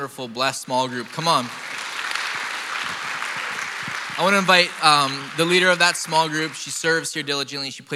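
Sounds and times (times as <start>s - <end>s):
speech: 0.0s - 1.8s, 4.2s - 7.9s
crowd applauding: 0.7s - 7.1s.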